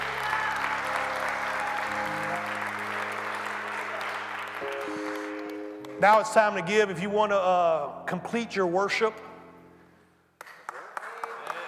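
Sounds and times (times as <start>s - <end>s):
audience applause: 0.0s - 5.9s, 10.4s - 11.6s
speech: 6.0s - 9.3s.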